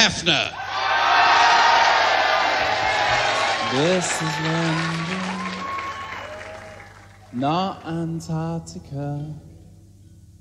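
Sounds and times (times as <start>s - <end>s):
speech: 0.0s - 0.6s, 3.7s - 5.2s, 7.3s - 9.5s
audience applauding and cheering: 0.6s - 7.4s.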